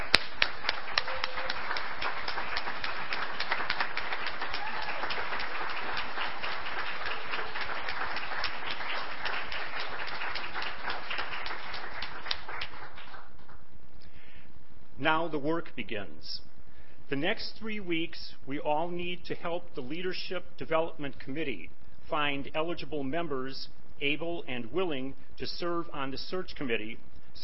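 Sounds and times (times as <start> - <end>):
audience clapping: 0.0 - 13.7
speech: 15.0 - 16.5, 17.1 - 27.4.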